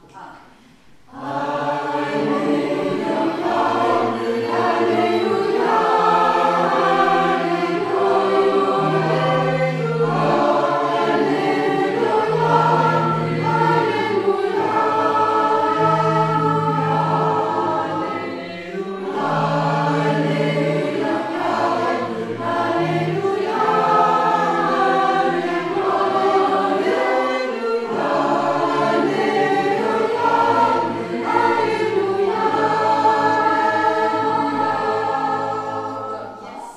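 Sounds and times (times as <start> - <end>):
full choir singing an alleluia from a mass: 0.0 - 36.7.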